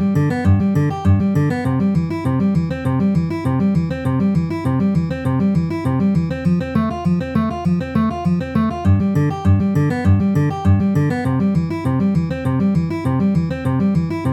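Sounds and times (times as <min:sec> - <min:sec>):
C F G C chord progression: 0:00.0 - 0:14.2.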